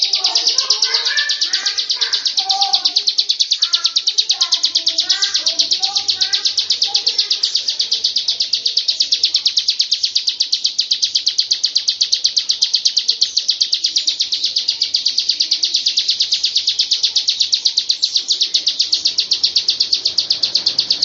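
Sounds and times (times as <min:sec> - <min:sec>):
bird chirping: 0:00.0 - 0:21.0.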